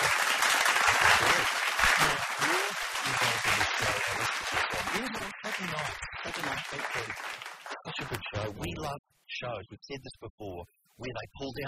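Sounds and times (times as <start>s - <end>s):
crowd applause: 0.0s - 8.1s
speech: 6.4s - 7.3s, 8.0s - 11.6s.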